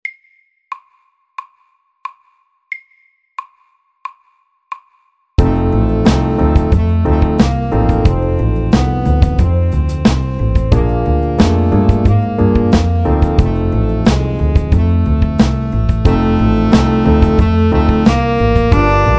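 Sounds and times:
chromatic blues: 5.4s - 19.1s.

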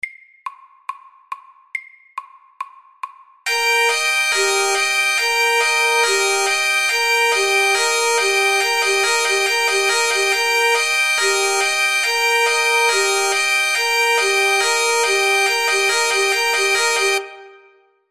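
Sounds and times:
alarm: 3.5s - 17.6s.

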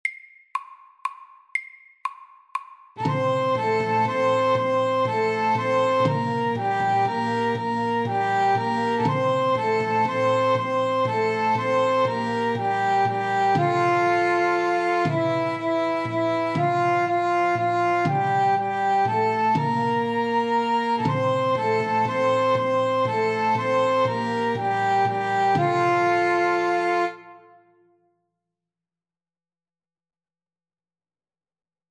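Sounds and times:
Irish melody: 3.0s - 27.7s.

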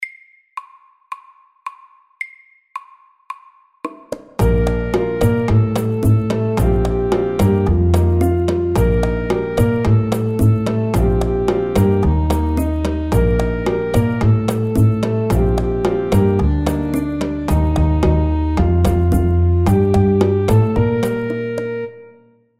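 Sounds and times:
spicy medium-tempo salsa music: 4.4s - 22.0s.

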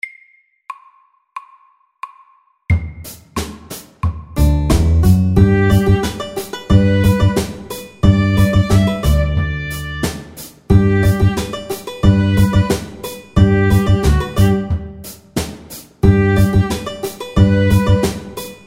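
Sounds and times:
bluegrass music: 4.4s - 15.1s, 16.0s - 18.6s.

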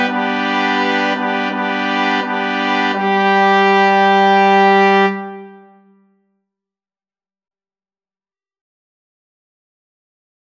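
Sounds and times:
slow fanfare for three: 0.0s - 6.0s.

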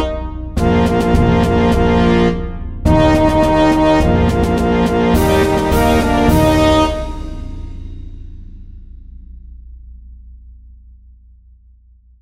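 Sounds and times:
medium fanfare and march music: 0.0s - 7.7s.

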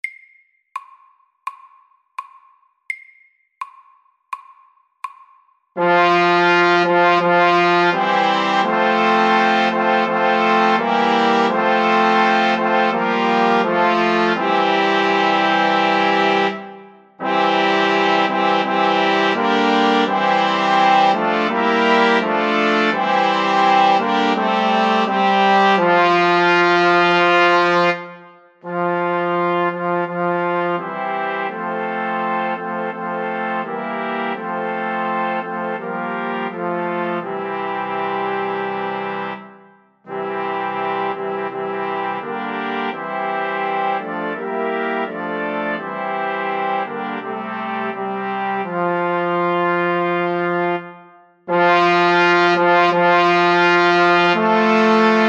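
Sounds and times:
slow fanfare for three: 5.8s - 55.2s.

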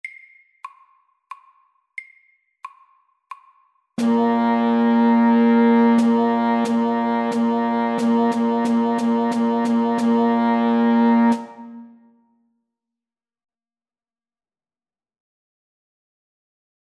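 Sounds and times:
rhythm in three beats per bar: 0.0s - 11.8s.

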